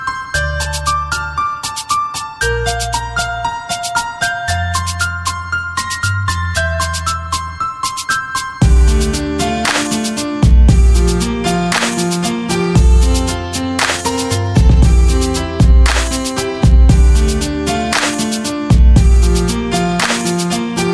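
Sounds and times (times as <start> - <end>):
music beat: 0.4 - 20.9.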